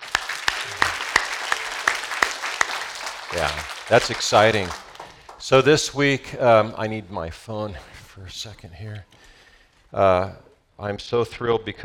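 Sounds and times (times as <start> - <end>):
audience applauding: 0.0 - 6.1
laughter: 0.2 - 5.1
speech: 3.3 - 4.8, 5.4 - 9.3, 9.9 - 11.8.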